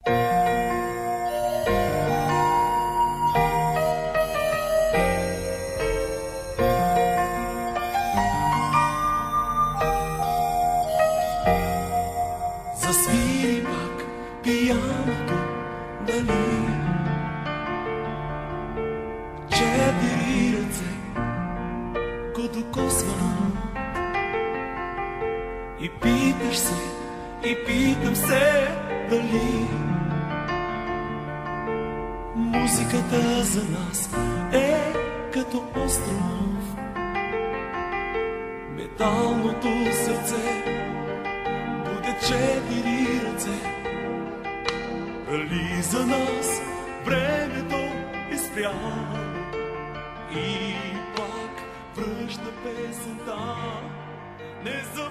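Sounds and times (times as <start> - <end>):
piano: 0.0 - 55.0.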